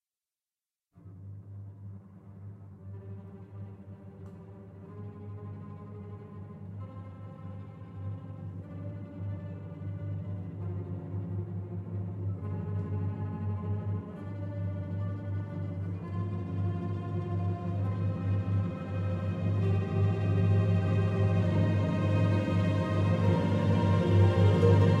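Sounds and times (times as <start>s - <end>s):
soprano with orchestra: 2.9s - 24.9s.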